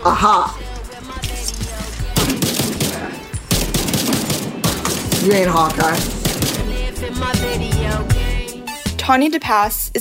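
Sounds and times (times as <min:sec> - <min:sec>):
speech: 0:00.1 - 0:00.6, 0:05.2 - 0:06.2, 0:07.0 - 0:08.2, 0:09.1 - 0:09.9
video game automatic gunfire: 0:02.2 - 0:06.8.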